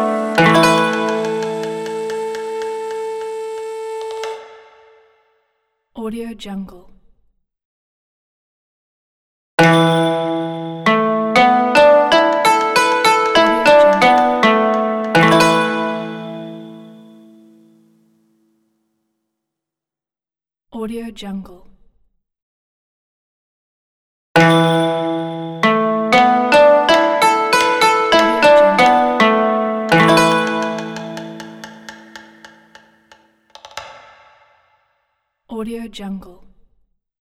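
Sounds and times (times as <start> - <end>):
traditional Asian logo music: 0.0 - 5.0, 9.6 - 17.6, 24.4 - 34.3.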